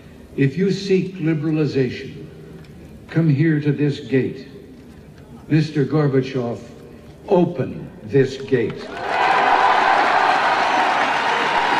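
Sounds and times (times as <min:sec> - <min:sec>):
speech: 0:00.4 - 0:02.4, 0:03.1 - 0:04.5, 0:05.5 - 0:06.7, 0:07.3 - 0:09.2
crowd cheering after a speech: 0:08.8 - 0:11.7.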